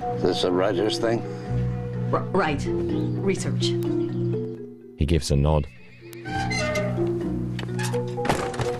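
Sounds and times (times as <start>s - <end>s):
speech: 0.2s - 1.5s, 2.1s - 4.0s, 5.0s - 6.6s
door closing with a thunk: 6.2s - 8.7s.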